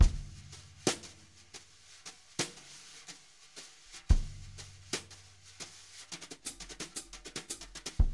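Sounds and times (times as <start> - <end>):
jazz brush drum loop: 0.0 - 8.1.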